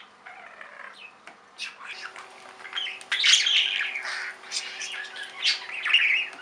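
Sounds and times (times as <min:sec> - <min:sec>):
budgerigar chattering: 0:01.6 - 0:06.4
steady low hum: 0:01.8 - 0:06.4.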